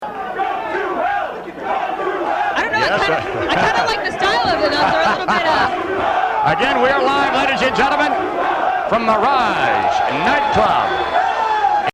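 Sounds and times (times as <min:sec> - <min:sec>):
crowd chanting: 0:00.0 - 0:11.9
laughter: 0:02.6 - 0:08.1.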